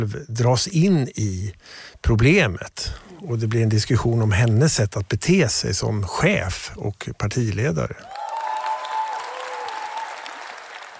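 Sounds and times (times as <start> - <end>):
speech: 0.0 - 8.2
party members applauding: 8.0 - 10.9.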